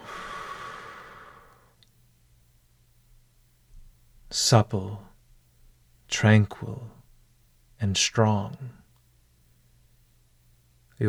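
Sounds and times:
quick exhale during a guided morning stretch breathing exercise: 0:00.0 - 0:01.8
speech: 0:04.3 - 0:05.1, 0:06.1 - 0:07.0, 0:07.8 - 0:08.8.

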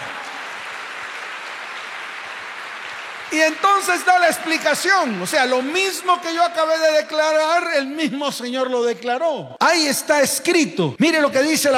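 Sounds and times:
audience applause: 0:00.0 - 0:07.1
speech: 0:03.3 - 0:11.7.

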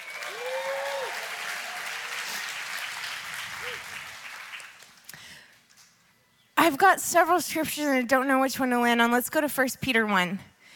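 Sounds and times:
whistle or whoop: 0:00.0 - 0:01.2
audience applause: 0:00.0 - 0:05.1
speech: 0:06.7 - 0:10.5.

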